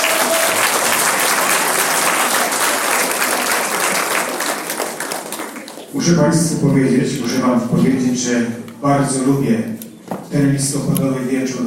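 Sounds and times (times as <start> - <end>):
audience applause: 0.0 - 5.9
speech: 6.0 - 11.6.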